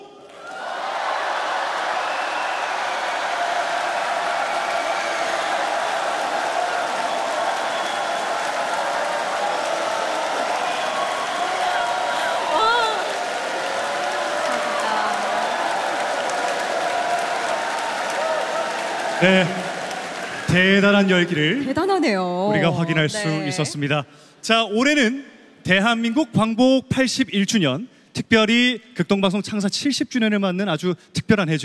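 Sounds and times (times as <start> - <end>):
crowd cheering in arena: 0.0 - 23.9
speech: 19.2 - 19.6, 20.5 - 31.6.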